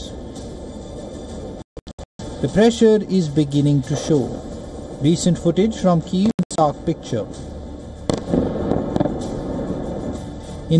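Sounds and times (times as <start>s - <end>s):
speech: 2.4s - 7.5s
missile impacts striking targets in a city district: 8.1s - 10.2s.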